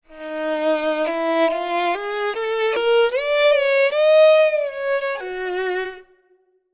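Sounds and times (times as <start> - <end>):
violin: 0.0 - 6.6.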